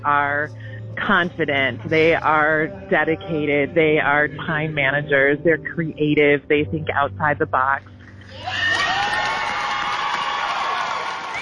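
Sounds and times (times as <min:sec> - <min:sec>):
speech: 0:00.0 - 0:08.8
audience cheering: 0:08.3 - 0:11.3
applause: 0:08.6 - 0:11.3.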